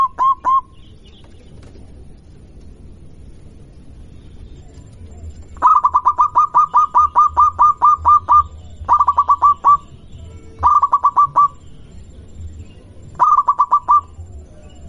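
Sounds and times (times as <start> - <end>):
local-type zebra dove song: 5.6 - 10.0, 10.6 - 11.7, 13.1 - 14.3.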